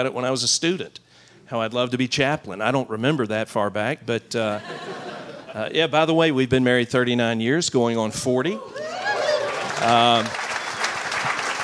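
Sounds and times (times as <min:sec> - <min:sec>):
speech: 0:00.0 - 0:09.0, 0:09.8 - 0:10.4
laughter: 0:04.5 - 0:05.6
sustained voiced cheer: 0:08.5 - 0:11.6
audience clapping: 0:08.8 - 0:11.6.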